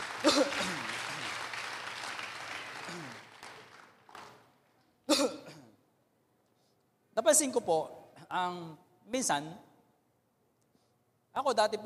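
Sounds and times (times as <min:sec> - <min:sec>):
church congregation applauding for the Lord: 0:00.0 - 0:04.7
scattered coughs: 0:00.1 - 0:01.5, 0:02.7 - 0:03.5, 0:05.1 - 0:05.8
throat clearing: 0:00.2 - 0:01.3, 0:02.8 - 0:03.3, 0:05.1 - 0:05.8
speech: 0:05.2 - 0:05.4, 0:07.4 - 0:09.7, 0:11.4 - 0:11.8.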